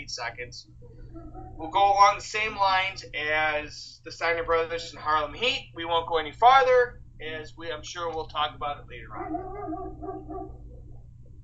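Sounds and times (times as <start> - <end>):
speech: 0.0 - 10.2
steady low hum: 0.0 - 11.4
dog whimpering yips: 0.8 - 1.6, 9.2 - 11.0
dog barking: 9.1 - 10.7.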